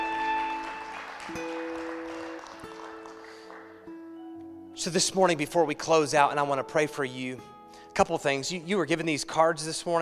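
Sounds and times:
audience applauding: 0.0 - 3.9
speech: 4.8 - 10.0.

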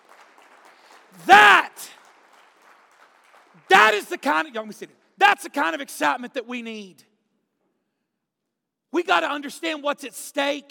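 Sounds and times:
sharp clap-like crack: 0.0 - 4.6
loud rising cheer: 1.1 - 2.2, 3.5 - 4.5
speech: 3.9 - 7.1, 8.9 - 10.6.

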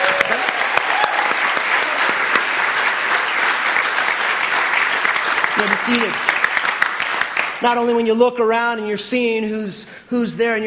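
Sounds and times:
audience applauding: 0.0 - 7.9
speech: 5.7 - 6.3, 7.6 - 10.6.

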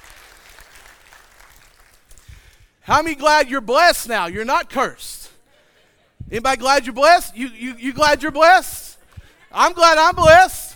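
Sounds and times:
audience hand clapping: 0.0 - 2.8
speech: 2.9 - 5.2, 6.3 - 8.8, 9.5 - 10.6.

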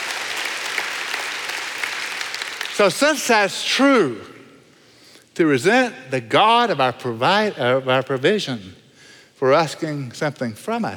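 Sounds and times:
audience clapping: 0.0 - 3.4
speech: 2.8 - 4.3, 5.4 - 8.8, 9.4 - 10.9.

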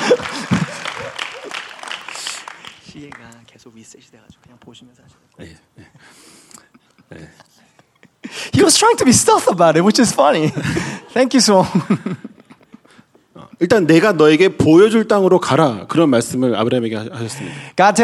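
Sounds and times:
laughter: 0.0 - 2.4, 5.8 - 9.5, 10.1 - 14.4
audience applause: 0.0 - 3.4
speech: 3.0 - 6.3, 7.1 - 7.6, 8.6 - 12.3, 13.6 - 18.0.

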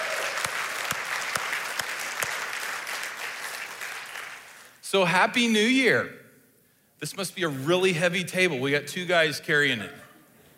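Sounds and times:
church congregation applause welcoming its online church: 0.0 - 4.8
speech: 4.9 - 6.2, 7.0 - 10.0.

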